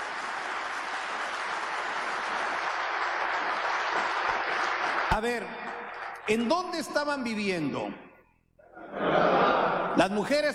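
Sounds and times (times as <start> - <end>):
audience applauding: 0.0 - 7.0
speech: 5.2 - 5.7, 6.3 - 8.0, 10.0 - 10.5
laughter: 8.6 - 10.3.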